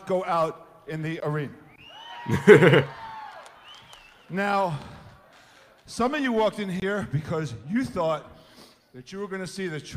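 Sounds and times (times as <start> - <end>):
speech: 0.1 - 1.6, 2.2 - 3.0, 4.3 - 4.9, 5.9 - 8.3, 9.0 - 9.9
audience cheering: 1.8 - 6.4
laughter: 2.2 - 3.2.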